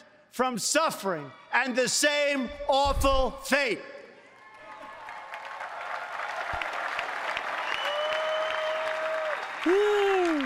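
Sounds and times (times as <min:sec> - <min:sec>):
speech: 0:00.4 - 0:04.0
audience applause: 0:04.4 - 0:10.4
whistle or cheer: 0:07.6 - 0:10.4.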